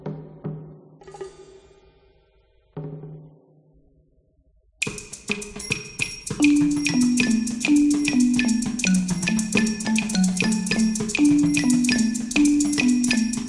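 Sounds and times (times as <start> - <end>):
drums: 0.0 - 2.0, 4.8 - 13.4.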